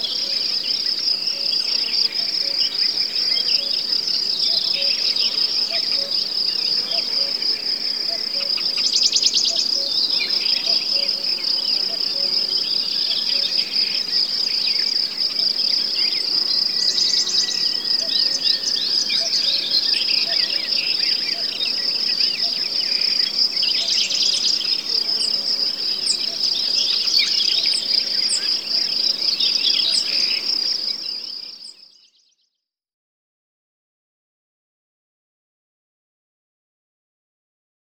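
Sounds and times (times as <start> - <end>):
broad-leaved woodland ambience in late spring: 0.0 - 32.0.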